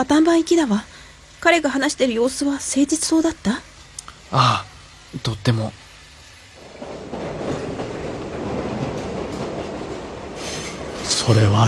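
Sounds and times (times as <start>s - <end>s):
speech: 0.0s - 3.7s, 4.3s - 5.8s, 11.2s - 11.6s
train running on rails: 5.1s - 11.6s.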